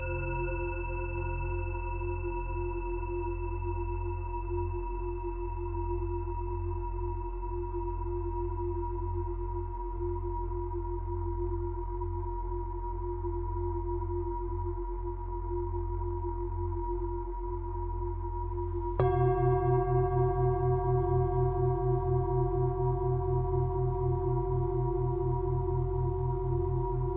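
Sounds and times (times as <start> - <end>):
low hum: 0.0 - 5.2, 18.4 - 27.1
tuning fork strike: 0.0 - 9.5, 18.7 - 27.1
Angel tuning fork tones: 0.0 - 27.1.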